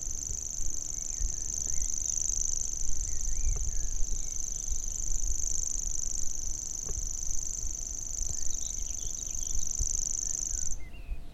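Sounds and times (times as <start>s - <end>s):
grasshopper warbler singing: 0.0s - 11.3s.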